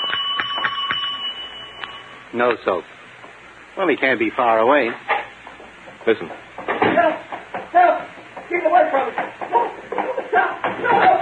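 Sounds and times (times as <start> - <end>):
bell ringing: 0.0 - 2.5
speech: 2.3 - 2.9, 3.8 - 5.1, 6.0 - 11.2.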